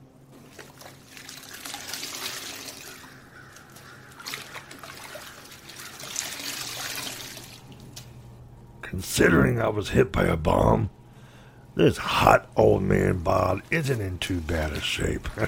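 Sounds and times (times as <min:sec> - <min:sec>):
water trickling while washing up: 0:00.3 - 0:08.0
speech: 0:08.9 - 0:11.0, 0:11.8 - 0:15.4.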